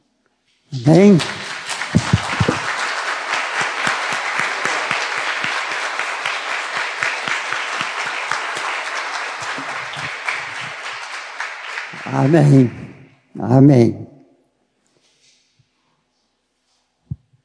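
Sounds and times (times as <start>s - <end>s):
speech: 0.7s - 1.4s, 12.3s - 12.8s, 13.4s - 14.0s
audience applause for the mothers: 0.8s - 13.1s.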